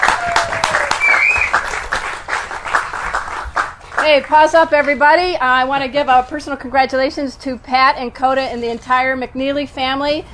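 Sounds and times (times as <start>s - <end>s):
audience applause: 0.0s - 4.3s
speech: 4.1s - 10.3s.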